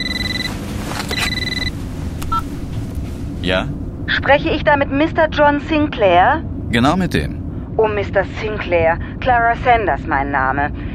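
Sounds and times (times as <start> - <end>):
mobile phone ringing: 0.0 - 1.7
speech: 3.4 - 10.8.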